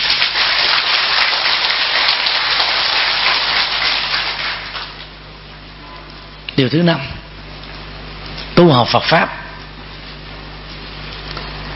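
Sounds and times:
loud audience applause: 0:00.0 - 0:05.1
speech: 0:06.6 - 0:07.2, 0:08.6 - 0:09.4.

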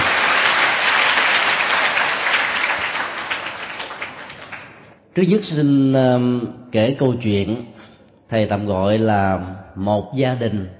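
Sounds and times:
large audience applause: 0:00.0 - 0:05.0
speech: 0:05.2 - 0:10.7.

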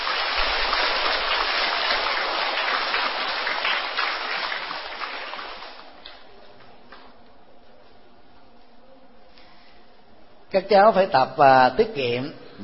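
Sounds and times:
applause: 0:00.0 - 0:05.9
speech: 0:10.5 - 0:12.6.

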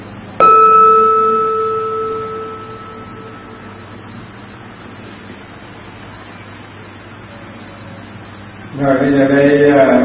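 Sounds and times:
temple bell being struck: 0:00.4 - 0:04.0
speech: 0:08.8 - 0:10.0.

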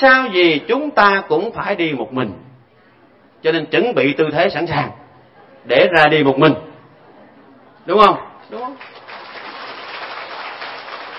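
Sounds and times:
speech: 0:00.0 - 0:02.4, 0:03.4 - 0:05.0, 0:05.6 - 0:06.7, 0:07.9 - 0:09.0
audience applause at a Buddhist dharma talk about death: 0:08.6 - 0:11.1.

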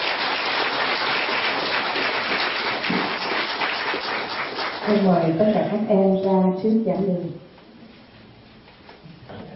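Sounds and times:
crowd applauding: 0:00.0 - 0:05.4
speech: 0:04.9 - 0:07.5.

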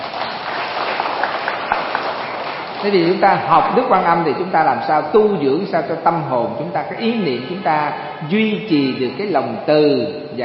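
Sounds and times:
audience applause after a Buddhist dharma talk: 0:00.0 - 0:03.5
speech: 0:02.8 - 0:10.4.

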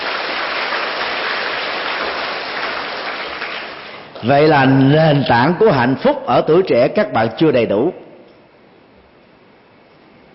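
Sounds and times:
audience applause: 0:00.0 - 0:04.1
speech: 0:04.2 - 0:08.0.

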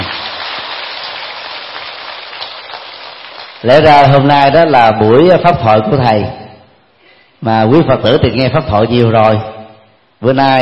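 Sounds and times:
audience applause: 0:00.0 - 0:03.6
speech: 0:03.6 - 0:06.4, 0:07.4 - 0:09.5, 0:10.2 - 0:10.6.

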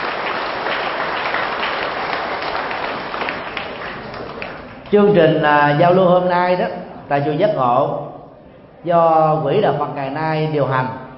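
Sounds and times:
crowd applauding: 0:00.0 - 0:04.9
speech: 0:04.9 - 0:08.1, 0:08.8 - 0:11.0.

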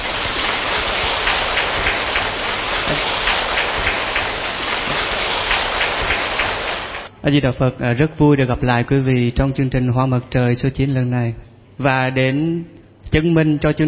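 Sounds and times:
audience applause: 0:00.0 - 0:07.1
speech: 0:07.2 - 0:13.8.

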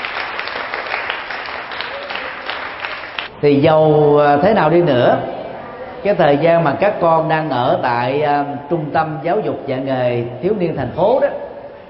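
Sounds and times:
loud applause: 0:00.0 - 0:03.3
speech: 0:03.4 - 0:05.4, 0:06.0 - 0:11.4.

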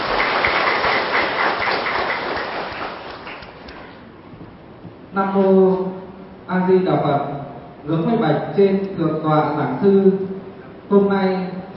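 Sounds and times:
audience applause: 0:00.0 - 0:04.0
speech: 0:05.2 - 0:05.8, 0:06.7 - 0:10.3, 0:10.9 - 0:11.5.

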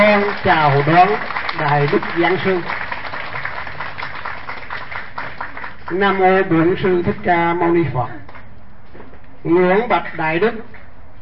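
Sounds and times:
audience applause welcoming a Buddhist lecturer at a Pháp Hoa temple gathering: 0:00.0 - 0:05.9
speech: 0:00.2 - 0:02.8, 0:05.9 - 0:08.3, 0:08.9 - 0:10.8.

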